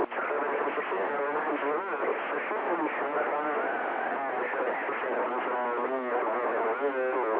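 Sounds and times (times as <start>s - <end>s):
noise: 0.0s - 7.3s.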